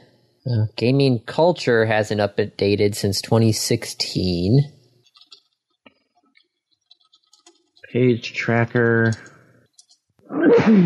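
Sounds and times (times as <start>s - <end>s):
speech: 0.4s - 4.8s, 7.9s - 9.3s, 10.3s - 10.8s
person sneezing: 10.3s - 10.8s.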